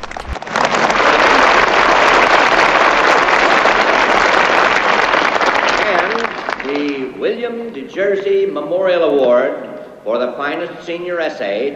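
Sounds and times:
audience applauding at graduation: 0:00.0 - 0:07.1
speech: 0:07.5 - 0:11.7.

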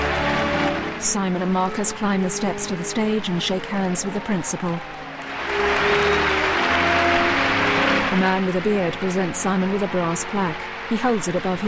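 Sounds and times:
audience clapping at a school ceremony: 0:00.0 - 0:01.5, 0:04.5 - 0:11.6
speech: 0:01.0 - 0:05.0, 0:08.2 - 0:11.6.

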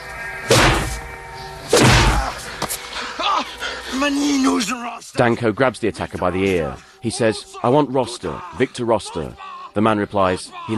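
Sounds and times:
heavy thuds of blows in a fistfight: 0:00.5 - 0:01.0, 0:01.7 - 0:02.4
speech: 0:03.9 - 0:10.7.

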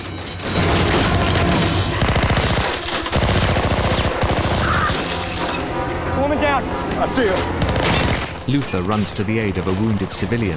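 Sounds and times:
automatic weapons fire directed at a helicopter: 0:00.4 - 0:05.1, 0:07.6 - 0:08.4
heavy low roar: 0:00.4 - 0:08.7
speech: 0:07.1 - 0:07.6, 0:08.5 - 0:10.5.

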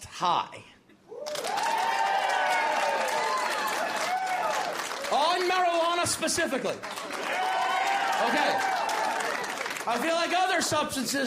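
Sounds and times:
speech: 0:00.2 - 0:00.7, 0:05.1 - 0:07.0, 0:08.2 - 0:08.7, 0:09.8 - 0:11.2
comedy crowd whoops: 0:01.1 - 0:04.8, 0:07.2 - 0:09.6
comedy crowd audience applause: 0:01.2 - 0:06.0, 0:06.6 - 0:10.7.

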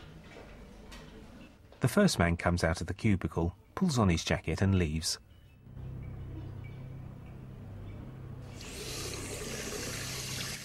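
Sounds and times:
speech: 0:01.8 - 0:05.3
water running from a tap into a bathroom sink: 0:08.5 - 0:10.6.

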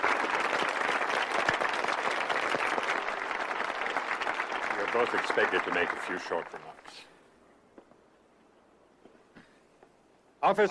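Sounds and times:
applause: 0:00.0 - 0:07.1
speech: 0:05.0 - 0:07.1, 0:10.4 - 0:10.6.

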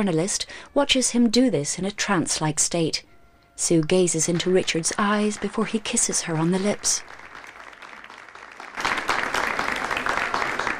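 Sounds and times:
speech: 0:00.0 - 0:07.2
applause for a couple: 0:04.3 - 0:10.7.

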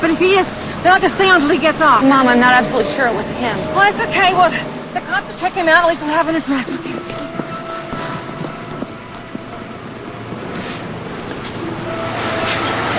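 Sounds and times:
bus engine rumbling while driving onward: 0:00.0 - 0:12.9
speech: 0:00.1 - 0:07.0.

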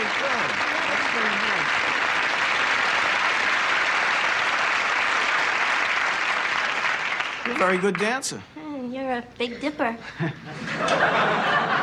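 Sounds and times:
two people applauding each other: 0:00.0 - 0:08.4
speech: 0:07.6 - 0:11.5
laughter: 0:10.0 - 0:11.8.

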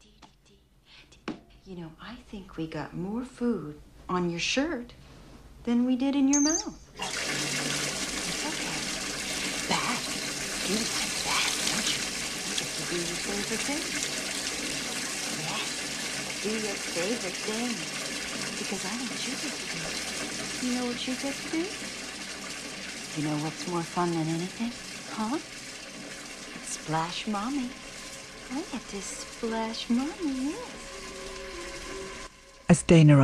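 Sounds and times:
speech: 0:01.7 - 0:05.0, 0:05.6 - 0:07.1, 0:12.9 - 0:14.3, 0:16.4 - 0:22.0, 0:23.2 - 0:25.6, 0:26.9 - 0:27.8, 0:28.5 - 0:30.8, 0:32.7 - 0:33.2
water running from a bathroom tap: 0:06.4 - 0:32.6.

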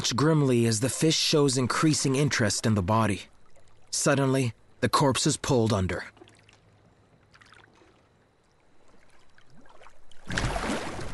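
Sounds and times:
speech: 0:00.0 - 0:03.3, 0:03.9 - 0:06.2
churning water: 0:00.0 - 0:11.1
five people paddling a boat with their hands: 0:06.1 - 0:11.1.

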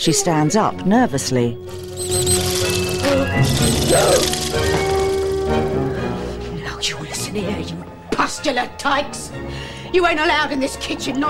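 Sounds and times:
speech: 0:00.0 - 0:02.2, 0:03.4 - 0:04.6, 0:06.8 - 0:11.2
sustained tones: 0:00.8 - 0:08.1
high chirping sounds: 0:01.6 - 0:06.0
clockwork toy mouse whirring: 0:01.7 - 0:05.6.

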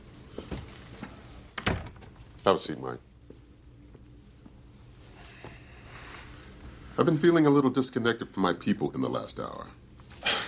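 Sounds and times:
door being pushed shut: 0:01.5 - 0:02.2
speech: 0:02.4 - 0:03.1, 0:07.0 - 0:09.8.

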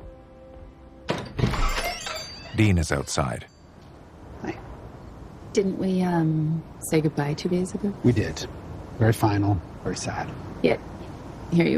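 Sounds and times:
front door opening: 0:01.0 - 0:02.9
speech: 0:02.6 - 0:03.6, 0:05.6 - 0:10.9, 0:11.5 - 0:11.7.

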